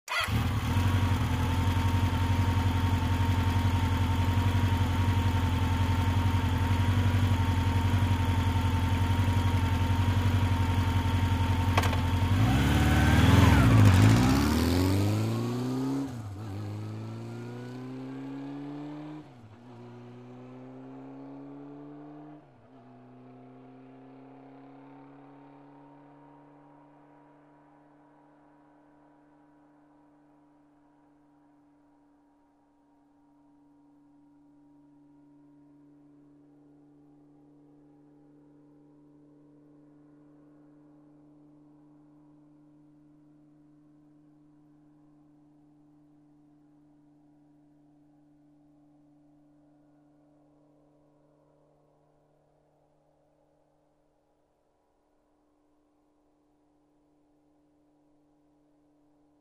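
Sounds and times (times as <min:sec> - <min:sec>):
motorcycle starting, idling and driving off quickly: 0:00.0 - 0:26.0.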